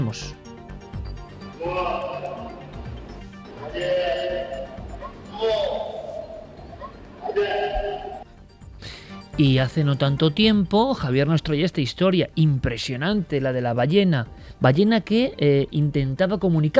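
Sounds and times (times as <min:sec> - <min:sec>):
speech: 0:00.1 - 0:00.4, 0:01.6 - 0:02.5, 0:03.6 - 0:04.8, 0:07.3 - 0:08.1, 0:09.4 - 0:16.7
elephant calling: 0:01.5 - 0:08.2.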